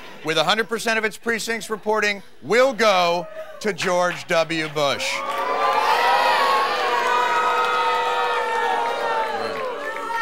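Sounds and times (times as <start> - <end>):
speech: 0.2 - 5.3
crowd cheering and shouting: 5.0 - 10.2.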